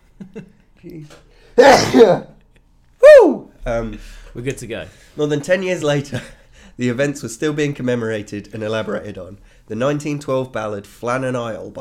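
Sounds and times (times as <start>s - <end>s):
speech: 0.4s - 2.3s, 3.2s - 11.8s
sneeze: 1.6s - 2.4s.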